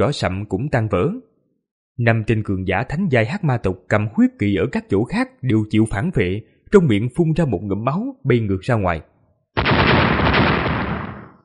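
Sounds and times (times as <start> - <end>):
speech: 0.0 - 1.3, 2.0 - 9.1
rapid series of explosions: 9.6 - 11.4.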